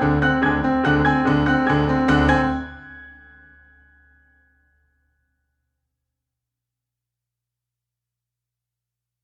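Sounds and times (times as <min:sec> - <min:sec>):
solo piano: 0:00.0 - 0:03.7.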